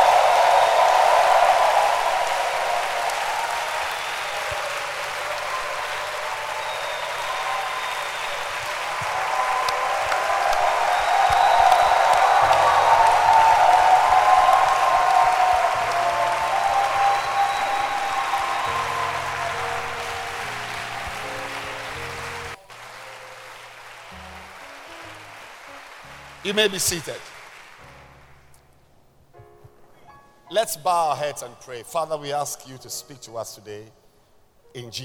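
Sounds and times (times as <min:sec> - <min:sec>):
audience clapping hands loudly: 0:00.0 - 0:28.5
speech: 0:26.5 - 0:27.3, 0:30.6 - 0:34.0, 0:34.8 - 0:35.0.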